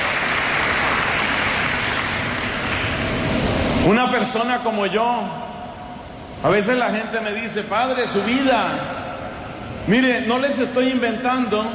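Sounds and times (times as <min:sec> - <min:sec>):
crowd applause: 0:00.0 - 0:03.5
speech: 0:03.9 - 0:05.4, 0:06.4 - 0:08.9, 0:09.8 - 0:11.7.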